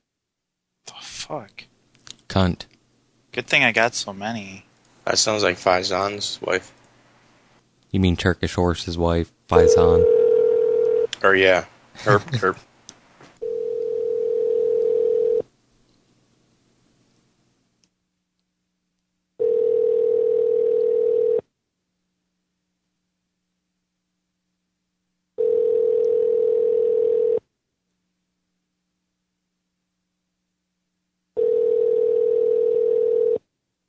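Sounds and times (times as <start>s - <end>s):
speech: 1.3s - 1.7s, 2.3s - 2.7s, 3.3s - 6.8s, 7.9s - 10.1s, 11.2s - 12.7s
phone ringback tone: 9.6s - 11.1s, 13.4s - 15.4s, 19.4s - 21.4s, 25.4s - 27.4s, 31.4s - 33.4s.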